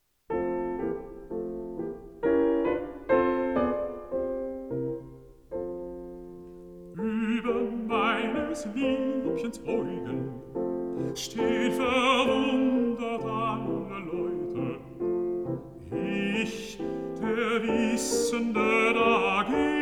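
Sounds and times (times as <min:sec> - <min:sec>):
piano: 0:00.0 - 0:19.8
person singing: 0:06.9 - 0:19.8.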